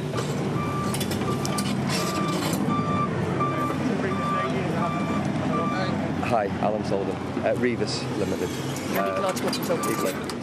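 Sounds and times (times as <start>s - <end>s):
dumper truck diesel engine rumble: 0.0s - 10.4s
heavy machinery at a river gravel works: 0.0s - 10.4s
dumper truck reversing alarm at a river gravel works: 0.6s - 5.9s, 9.0s - 10.2s
speech: 6.4s - 10.4s.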